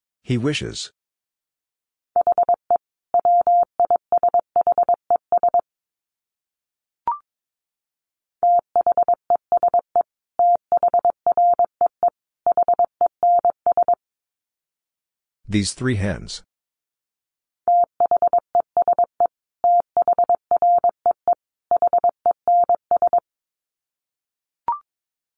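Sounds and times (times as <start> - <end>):
speech: 0.3 - 1.0, 15.5 - 16.5
Morse code practice tones: 2.2 - 2.6, 3.2 - 5.6, 8.5 - 9.8, 10.4 - 14.0, 17.7 - 23.2.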